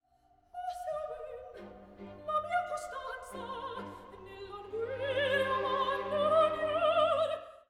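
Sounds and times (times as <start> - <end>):
dramatic operatic singing: 0.6 - 7.6.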